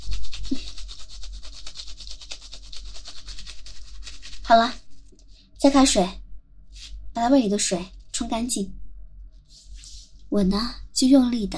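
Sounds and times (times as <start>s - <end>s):
brush scrubbing: 0.0s - 5.5s
speech: 4.5s - 4.8s, 5.6s - 6.2s, 7.2s - 8.8s, 10.3s - 11.5s.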